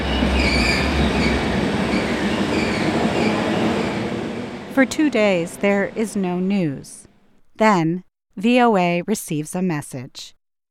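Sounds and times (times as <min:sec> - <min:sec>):
train travelling on rails: 0:00.0 - 0:07.2
speech: 0:04.8 - 0:07.0, 0:07.6 - 0:10.4.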